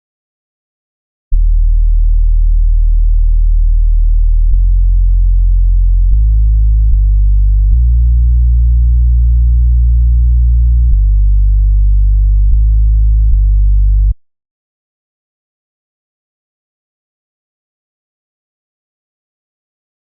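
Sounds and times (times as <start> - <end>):
bass: 1.3 - 14.2.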